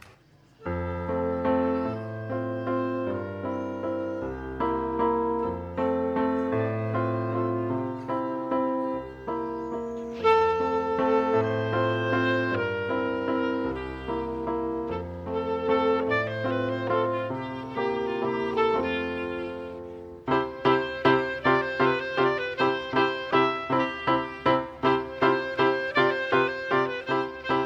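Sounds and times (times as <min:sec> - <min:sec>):
instrumental music: 0:00.6 - 0:27.6.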